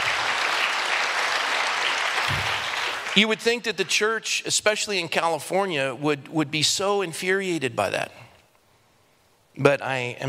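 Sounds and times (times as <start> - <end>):
audience applause: 0.0 - 3.9
speech: 3.2 - 8.2, 9.6 - 10.2.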